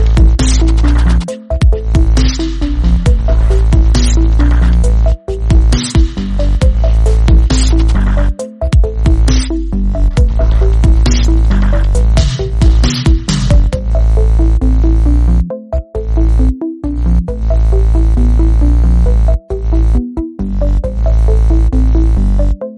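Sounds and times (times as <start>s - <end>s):
dubstep music: 0.0s - 22.5s.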